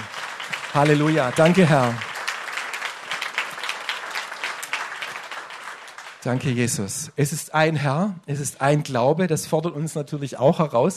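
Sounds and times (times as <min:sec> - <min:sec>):
applause: 0:00.0 - 0:07.1
speech: 0:00.8 - 0:02.1, 0:06.2 - 0:10.9.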